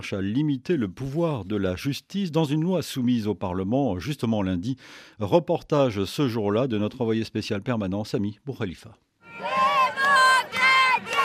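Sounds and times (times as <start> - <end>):
speech: 0.0 - 9.6
crowd of protesters shouting a rhythmic chant: 9.2 - 11.2.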